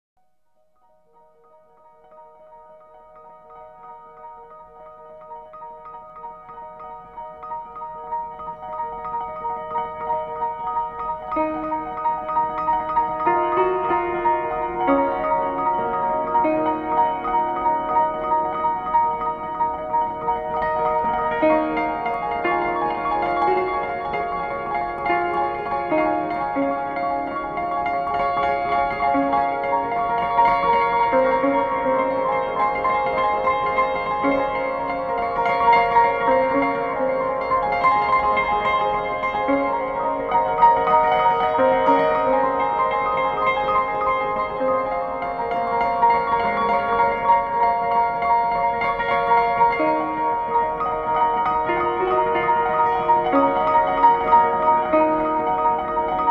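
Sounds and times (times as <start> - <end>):
piano: 0.2 - 56.2.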